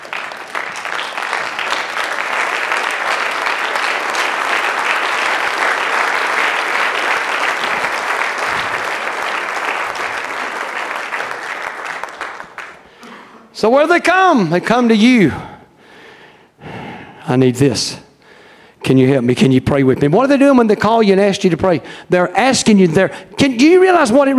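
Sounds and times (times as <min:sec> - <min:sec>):
audience hand clapping applause: 0:00.0 - 0:13.1
speech: 0:13.6 - 0:15.5, 0:17.3 - 0:18.0, 0:18.9 - 0:24.3.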